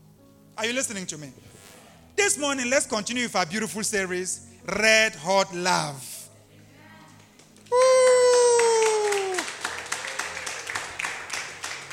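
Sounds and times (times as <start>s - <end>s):
speech: 0.6s - 1.6s, 2.2s - 6.1s
audience clapping: 7.2s - 11.9s.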